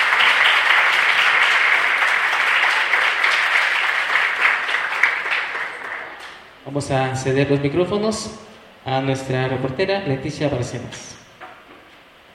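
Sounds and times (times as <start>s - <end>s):
audience applause: 0.0s - 6.5s
speech: 6.8s - 11.2s.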